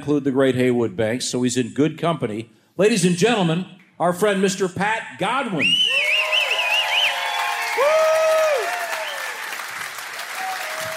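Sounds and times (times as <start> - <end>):
speech: 0.0 - 6.1
high sliding whistles: 5.6 - 7.5
crowd applause: 6.0 - 10.9.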